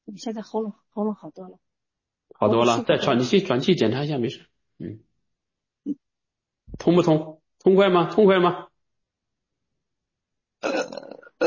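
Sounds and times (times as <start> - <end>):
speech: 0.1 - 1.7, 2.3 - 5.1, 5.8 - 6.0, 6.7 - 8.7
person burping: 10.6 - 11.4.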